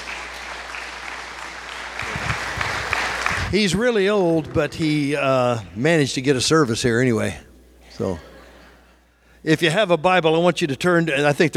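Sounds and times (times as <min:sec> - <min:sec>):
audience applause at a Missions Sunday church service: 0:00.0 - 0:05.6
speech: 0:03.5 - 0:08.3, 0:09.4 - 0:11.5.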